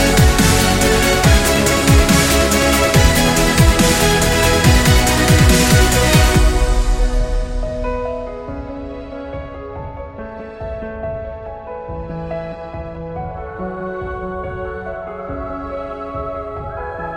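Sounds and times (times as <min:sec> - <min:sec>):
cinematic dubstep music: 0:00.0 - 0:09.7.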